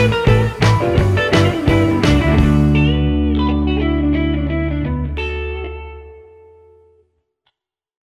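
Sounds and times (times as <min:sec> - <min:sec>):
background music pads: 0:00.0 - 0:06.8.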